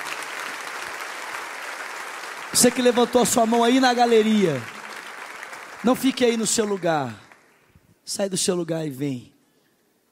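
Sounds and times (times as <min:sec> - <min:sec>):
church audience applause: 0:00.0 - 0:07.5
speech: 0:02.5 - 0:04.7, 0:05.8 - 0:07.2, 0:08.1 - 0:09.3.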